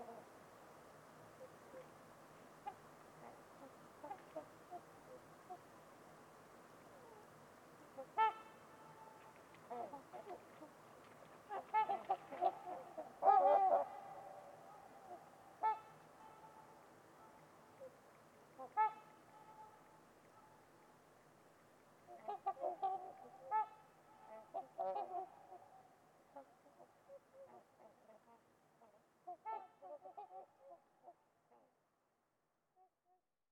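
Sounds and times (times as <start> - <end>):
trumpeter swans trumpeting: 7.0 - 20.7, 22.1 - 30.6.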